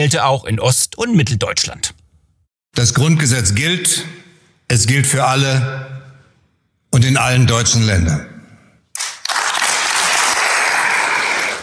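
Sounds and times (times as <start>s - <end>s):
speech: 0.0s - 2.0s, 2.8s - 5.9s, 6.9s - 8.3s
large audience applause: 9.0s - 11.6s.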